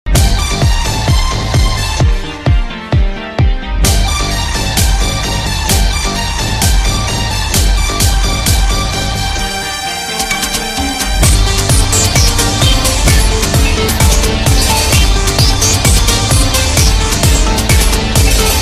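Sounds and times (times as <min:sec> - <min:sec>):
motivational phonk funk music: 0:00.1 - 0:18.6.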